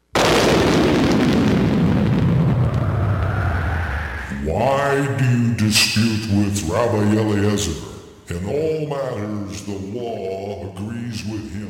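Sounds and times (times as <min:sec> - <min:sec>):
thunder crack and rumble: 0:00.1 - 0:04.3
speech: 0:04.6 - 0:11.6.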